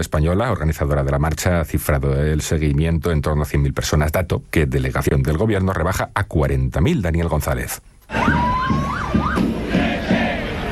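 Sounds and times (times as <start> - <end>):
speech: 0.0 - 9.4
siren wailing: 8.1 - 9.6
protest march crowd roaring in Madrid: 8.1 - 10.7.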